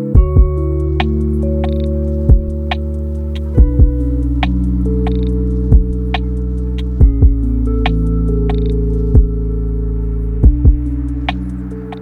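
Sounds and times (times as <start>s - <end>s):
lofi hip hop: 0.1s - 11.9s.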